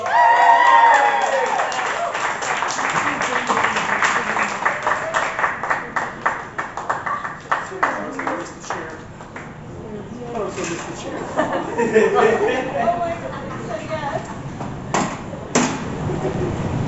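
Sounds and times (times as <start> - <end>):
audience applause for a poet: 0.0 - 9.0
laughter: 6.9 - 7.9, 11.0 - 14.5, 16.0 - 16.7.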